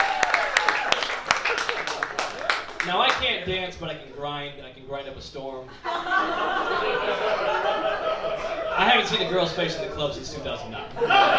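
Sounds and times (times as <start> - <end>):
audience clapping: 0.0 - 3.5
speech: 2.8 - 8.1, 8.8 - 11.3
laughter: 5.7 - 11.3.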